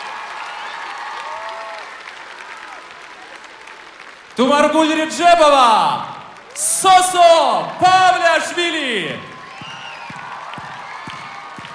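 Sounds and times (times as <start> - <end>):
audience applause: 0.0 - 11.7
speech: 4.4 - 9.3.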